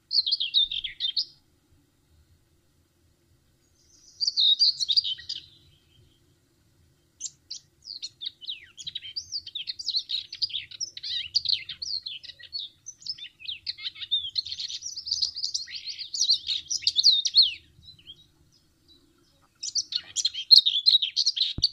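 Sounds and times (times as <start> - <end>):
Curruca zarcera bird: 0.0 - 1.4, 3.6 - 21.7.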